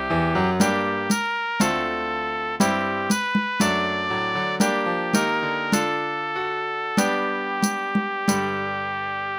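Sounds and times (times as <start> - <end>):
piano: 0.0 - 9.3
trumpet playing an old song: 0.0 - 9.3
snare drum: 0.6 - 2.0, 2.6 - 4.0, 4.6 - 6.1, 7.0 - 8.6.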